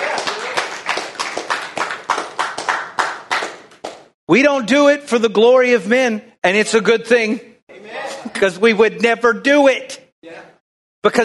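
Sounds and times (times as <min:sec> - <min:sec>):
audience clapping: 0:00.0 - 0:04.2
speech: 0:04.3 - 0:07.5, 0:08.2 - 0:09.9, 0:11.0 - 0:11.2.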